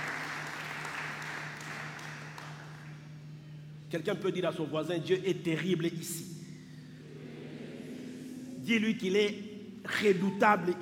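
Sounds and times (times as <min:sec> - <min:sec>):
church congregation applauding after a passage of scripture: 0:00.0 - 0:03.0
low constant hum: 0:00.0 - 0:10.8
speech: 0:03.9 - 0:06.4, 0:08.7 - 0:10.8.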